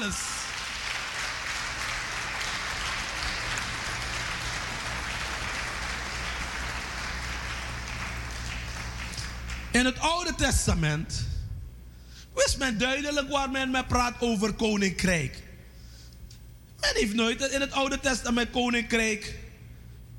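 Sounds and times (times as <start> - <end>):
audience applauding: 0.0 - 9.8
speech: 9.8 - 11.3, 12.6 - 15.4, 16.8 - 19.4.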